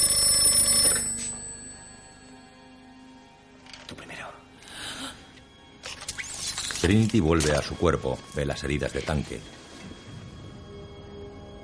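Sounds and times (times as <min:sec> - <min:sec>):
telephone ringing with a metallic bell trill: 0:00.0 - 0:02.7
speech: 0:06.8 - 0:09.6.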